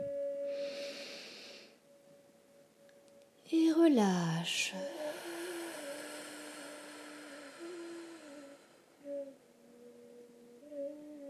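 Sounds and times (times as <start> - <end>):
steady held tone: 0.0 - 11.2
deep inhale during a guided breathing exercise: 0.5 - 1.8, 4.9 - 9.2
speech: 3.8 - 5.0.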